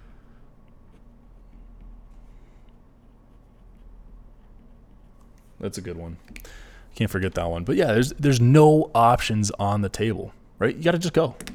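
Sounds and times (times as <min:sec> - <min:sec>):
pen writing something down on paper: 0:00.9 - 0:05.6
speech: 0:05.6 - 0:11.5.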